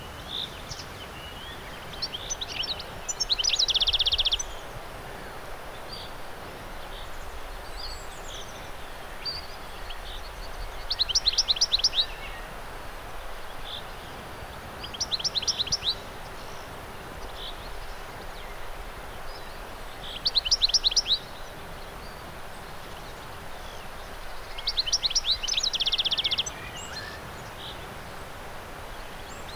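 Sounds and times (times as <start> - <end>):
birdsong in a meadow: 0.0 - 29.5
wind in a meadow: 0.0 - 29.5.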